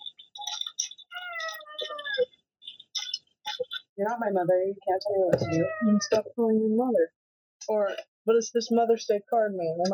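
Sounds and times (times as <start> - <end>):
cat meowing: 1.1 - 2.3, 5.4 - 6.2
speech: 4.0 - 9.9.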